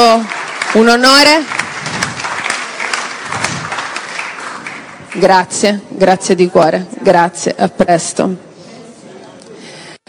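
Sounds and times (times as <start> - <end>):
speech: 0.0 - 1.6, 5.2 - 8.5
audience applause: 0.0 - 5.2.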